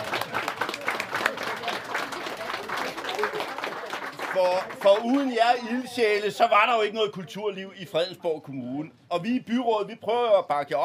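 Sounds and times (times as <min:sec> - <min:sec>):
audience applause: 0:00.0 - 0:05.4
speech: 0:04.4 - 0:10.8.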